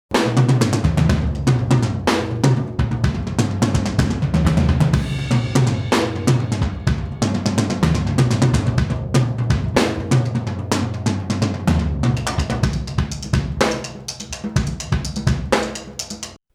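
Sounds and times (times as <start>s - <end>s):
isolated drums: 0.0s - 16.5s.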